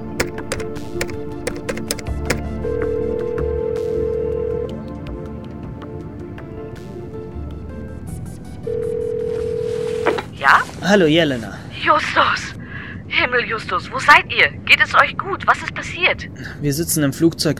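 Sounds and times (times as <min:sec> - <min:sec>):
telephone dialing clicks and beeps: 0:00.2 - 0:04.8
low-pitched telephone dial tone: 0:02.6 - 0:04.8, 0:08.7 - 0:10.2
speech: 0:10.9 - 0:12.5, 0:13.3 - 0:17.5.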